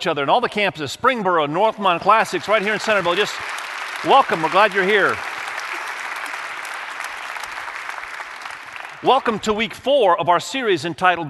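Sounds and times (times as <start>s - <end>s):
speech: 0.0s - 5.3s, 9.0s - 11.2s
large crowd applauding: 1.7s - 9.7s.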